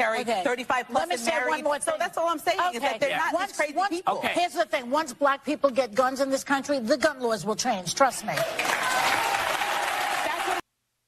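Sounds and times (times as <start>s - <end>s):
speech: 0.0s - 9.1s
crowd cheering: 8.3s - 10.6s.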